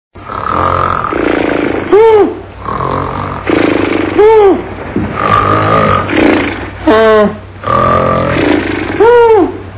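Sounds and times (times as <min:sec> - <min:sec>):
person snoring: 0:00.2 - 0:04.6, 0:05.2 - 0:06.7, 0:07.6 - 0:09.3.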